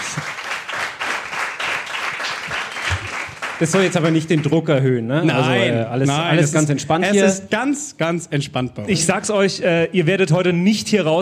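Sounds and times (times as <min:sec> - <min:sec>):
audience applause: 0:00.0 - 0:04.6
speech: 0:03.6 - 0:11.2.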